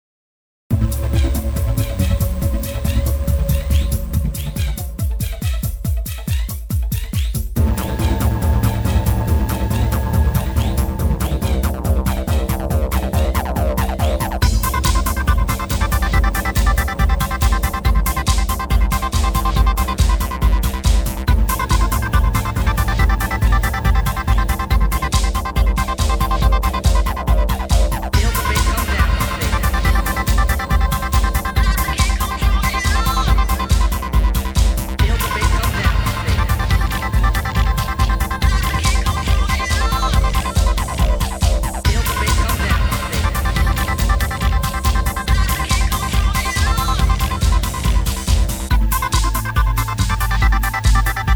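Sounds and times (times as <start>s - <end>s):
bass music: 0.7s - 51.3s.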